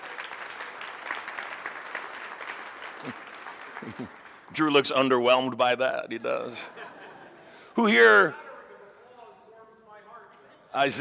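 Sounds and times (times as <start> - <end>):
audience applause: 0.0 - 4.6
speech: 3.0 - 3.2, 3.8 - 6.8, 7.8 - 8.4, 10.8 - 10.9
laughter: 3.0 - 4.3, 6.2 - 8.9.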